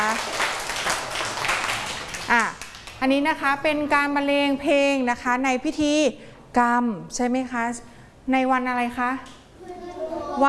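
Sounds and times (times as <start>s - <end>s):
children clapping after Thai ceremonial music: 0.0s - 3.0s
speech: 3.0s - 9.4s.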